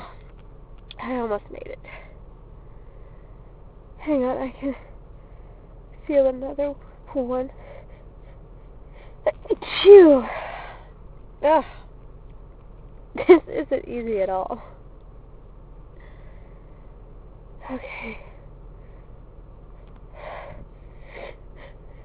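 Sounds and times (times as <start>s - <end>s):
woman's voice: 1.0s - 1.9s, 4.0s - 4.9s, 6.0s - 7.6s, 9.3s - 10.4s, 11.4s - 11.8s, 13.2s - 14.7s, 17.6s - 18.3s.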